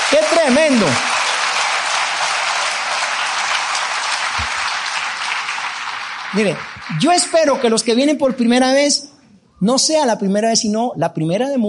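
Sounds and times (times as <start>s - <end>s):
audience applauding: 0.0s - 8.6s
speech: 0.1s - 1.2s, 6.3s - 11.6s.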